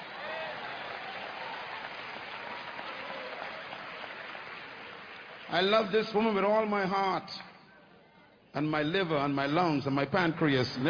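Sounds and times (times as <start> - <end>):
audience clapping: 0.0 - 6.8, 10.4 - 10.8
speech: 5.5 - 7.5, 8.5 - 10.8.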